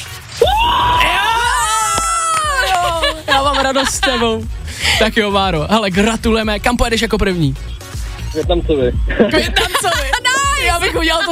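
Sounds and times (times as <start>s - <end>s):
person shouting for joy after winning an electric scooter: 0.4s - 3.6s
laughter: 2.2s - 5.1s, 9.1s - 11.3s
speech: 3.7s - 7.8s, 8.4s - 11.3s.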